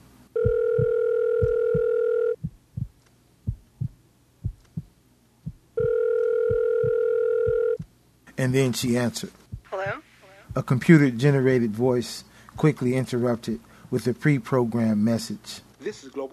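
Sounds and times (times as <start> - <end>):
telephone ringing: 0.4 - 2.4, 5.8 - 7.8
thumping heartbeat: 0.4 - 8.0, 9.4 - 10.7
speech: 8.4 - 9.4, 10.6 - 16.3.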